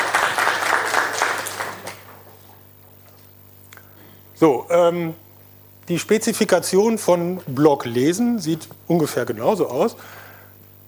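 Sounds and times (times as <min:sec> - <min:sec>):
audience applause: 0:00.0 - 0:02.5
speech: 0:04.4 - 0:05.2, 0:05.9 - 0:10.2.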